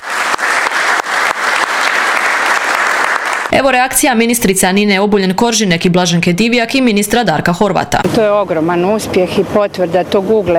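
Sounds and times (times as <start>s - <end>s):
Croatian government members clapping during a cabinet session: 0.0s - 3.5s
speech: 3.6s - 10.5s.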